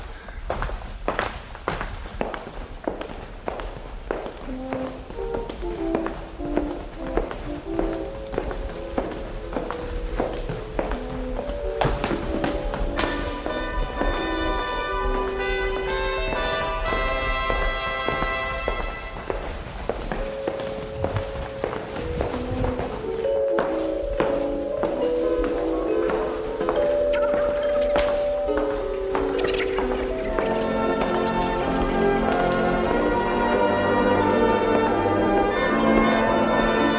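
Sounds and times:
footsteps of people walking through rooms: 0.0s - 36.1s
ringing tonal sounds: 26.2s - 32.0s.

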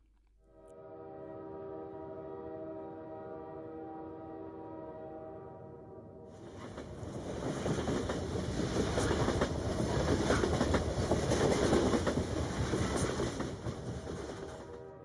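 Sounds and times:
steam locomotive passenger train from Moscow to Petrograd rolling along rails: 6.4s - 15.0s.

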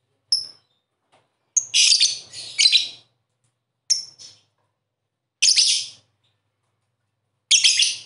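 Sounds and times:
bird song in short bright chirping bursts: 0.3s - 3.2s, 3.9s - 4.6s, 5.4s - 6.5s, 7.5s - 8.0s.

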